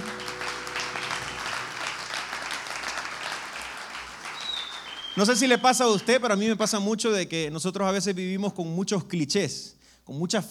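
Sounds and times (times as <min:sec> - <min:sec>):
church audience applause: 0:00.0 - 0:06.2
speech: 0:05.2 - 0:10.5.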